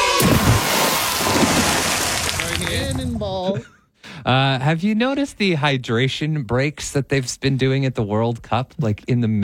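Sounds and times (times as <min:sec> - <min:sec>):
cannonball splash into water: 0:00.2 - 0:02.6
speech: 0:03.6 - 0:09.4.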